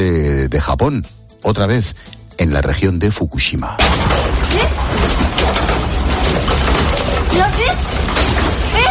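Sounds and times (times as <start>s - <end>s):
speech: 0.6s - 5.3s
tables, chairs and beds shaking in an earthquake: 3.8s - 8.9s.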